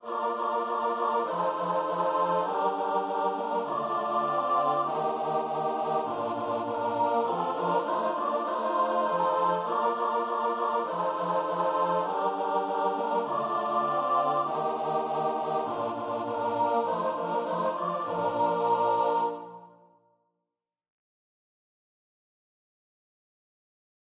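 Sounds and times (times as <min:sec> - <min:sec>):
choir singing: 0:00.0 - 0:19.9.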